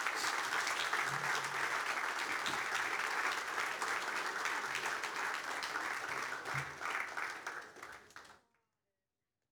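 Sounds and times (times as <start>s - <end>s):
audience applause: 0.0s - 8.3s.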